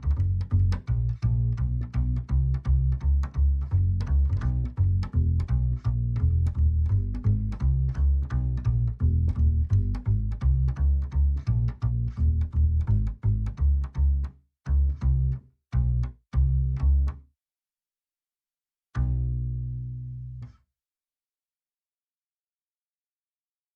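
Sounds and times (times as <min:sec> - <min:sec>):
double bass: 0:00.0 - 0:17.2, 0:19.0 - 0:20.6.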